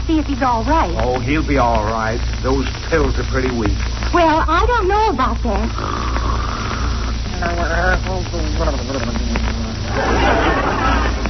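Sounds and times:
speech: 0.1 - 6.2, 7.4 - 9.4
loud snoring: 5.7 - 7.8
laughter: 8.6 - 11.2.

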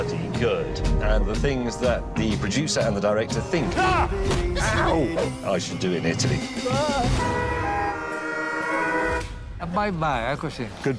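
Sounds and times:
speech: 0.0 - 7.6, 9.6 - 10.9
car horn honking: 7.0 - 9.4.

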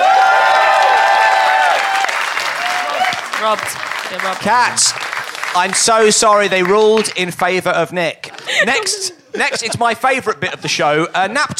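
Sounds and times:
voices cheering: 0.0 - 4.9
crowd applause: 0.0 - 7.2
speech: 3.4 - 11.5
laughter: 8.2 - 11.0.

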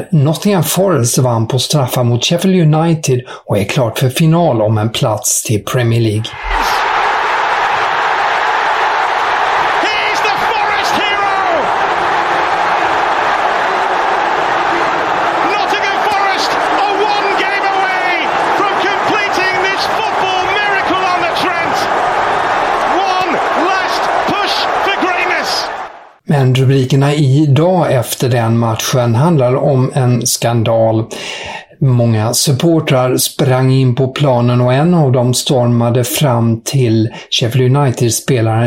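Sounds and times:
speech: 0.0 - 6.8, 26.5 - 38.6
football stadium crowd cheering: 6.3 - 26.2
shouts and whoops: 6.4 - 26.2.

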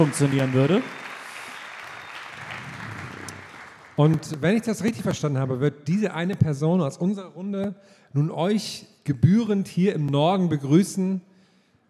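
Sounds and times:
speech: 0.0 - 1.0, 4.0 - 11.3
audience applause at a stage event: 0.0 - 4.5.

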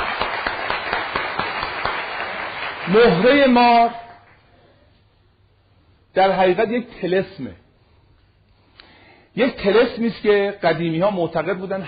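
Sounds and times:
audience applause: 0.0 - 3.4
regular even beat of louder claps: 0.0 - 3.4
speech: 2.9 - 4.0, 6.1 - 7.6, 9.4 - 11.8.

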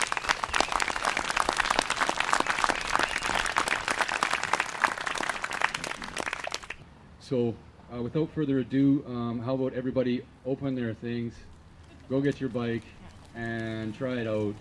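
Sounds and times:
crowd applause closing a presentation at a bicycle project event: 0.0 - 6.8
speech: 7.3 - 11.5, 12.1 - 14.5.

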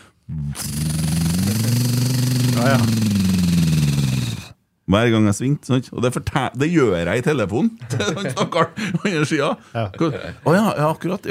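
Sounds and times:
voice imitating faulty car front wheel noise: 0.3 - 4.6
speech: 2.6 - 3.5, 4.9 - 11.2
laughter: 3.7 - 4.5.

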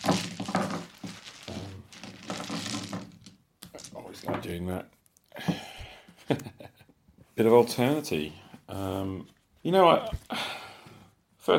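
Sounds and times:
dice being rolled: 0.0 - 4.6
speech: 4.2 - 5.0, 6.3 - 6.7, 7.4 - 10.6.

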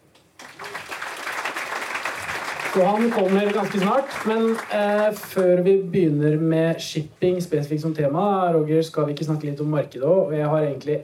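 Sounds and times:
applause: 0.4 - 5.6
speech: 2.8 - 11.0.

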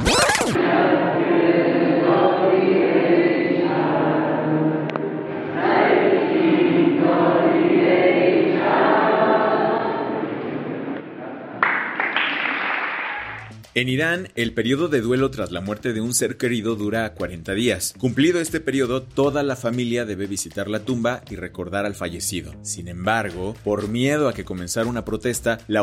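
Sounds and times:
thousands of young people praying in a cemetery: 0.6 - 13.4
thousands of young people applauding in a cemetery: 11.6 - 13.6
speech: 13.8 - 25.8.

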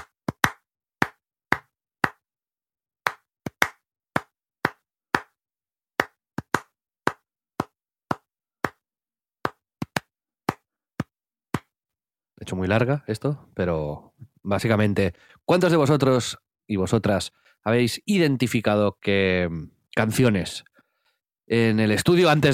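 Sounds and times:
hands clapping the rhythm of a song: 0.0 - 2.3, 3.0 - 11.7
speech: 12.4 - 20.7, 21.5 - 22.5.

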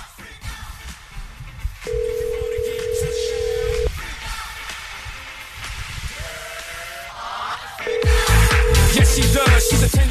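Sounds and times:
lively music: 0.0 - 10.1
telephone ringback tones: 1.9 - 3.9, 7.9 - 10.0.

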